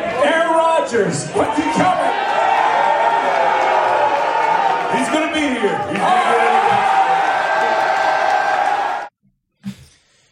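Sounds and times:
fans cheering: 0.0 - 9.1
loud applause of fans: 0.0 - 9.1
speech: 0.9 - 2.0, 4.9 - 6.8.

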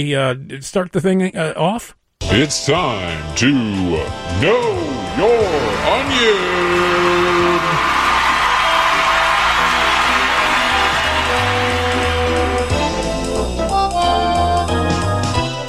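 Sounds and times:
speech: 0.0 - 6.8
tonal music: 4.4 - 14.8
enthusiastic crowd cheering and whooping: 5.2 - 12.8.

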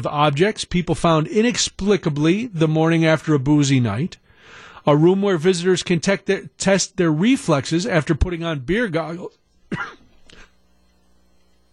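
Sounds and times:
speech: 0.0 - 10.0
person coughing after beer went down the wrong way: 9.7 - 10.5.

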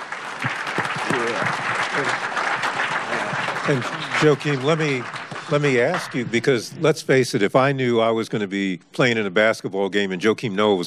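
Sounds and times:
crowd applause: 0.0 - 6.5
speech: 1.2 - 2.2, 3.7 - 10.8.

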